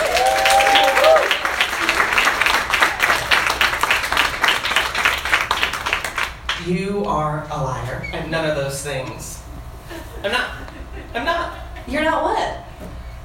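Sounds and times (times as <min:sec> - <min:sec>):
cheer or whoop: 0:00.0 - 0:01.4
audience applause: 0:00.0 - 0:06.6
speech: 0:07.4 - 0:10.6
laughter: 0:09.8 - 0:11.9.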